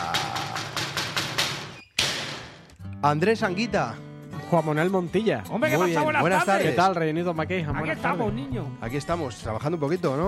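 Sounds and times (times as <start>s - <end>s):
knocking at the door: 0.0s - 2.6s
speech: 3.0s - 10.2s.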